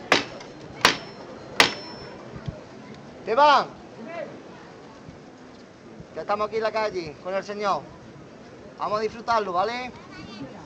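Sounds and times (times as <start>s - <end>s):
metal knocker striking on a Holy Week float: 0.0s - 2.1s
speech: 3.3s - 3.8s, 6.2s - 8.0s, 8.8s - 10.6s.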